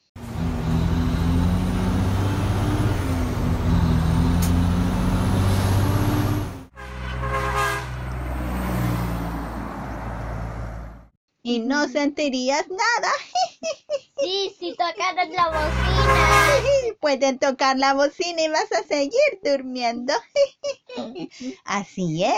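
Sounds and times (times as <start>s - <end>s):
heavy truck engine rumbling past: 0.2s - 11.2s, 15.4s - 16.8s
speech: 11.5s - 22.3s
laughter: 13.1s - 15.5s, 16.2s - 16.9s, 20.2s - 21.6s.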